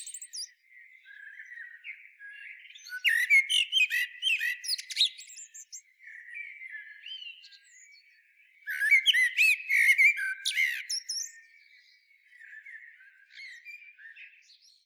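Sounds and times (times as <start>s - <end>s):
Eurasian blackbird clicks and whistles: 0.0s - 0.5s, 2.7s - 5.8s, 8.7s - 11.4s.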